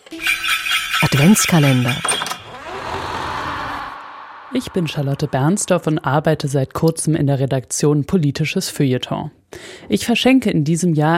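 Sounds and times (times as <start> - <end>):
speech: 1.1 - 2.3, 4.5 - 11.1
door creaking: 1.8 - 4.0.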